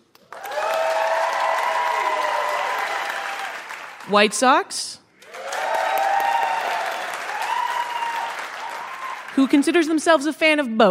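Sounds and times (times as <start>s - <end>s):
audience applause: 0.2s - 4.1s, 5.2s - 9.9s
cheers and whoops: 0.3s - 3.9s, 5.2s - 9.4s
speech: 4.1s - 5.0s, 9.4s - 10.8s.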